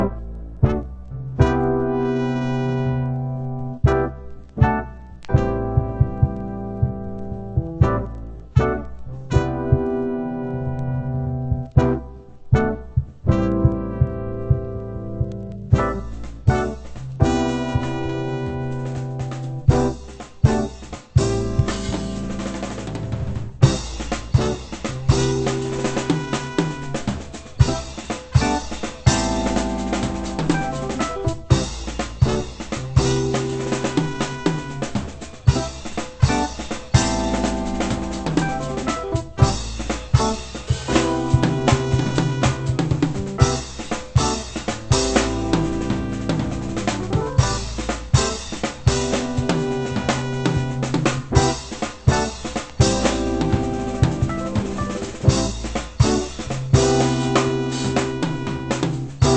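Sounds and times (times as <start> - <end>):
techno music: 0.0 - 59.3.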